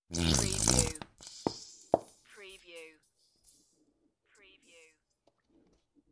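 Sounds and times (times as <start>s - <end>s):
squeezy honey bottle squeezed: 0.1s - 1.9s.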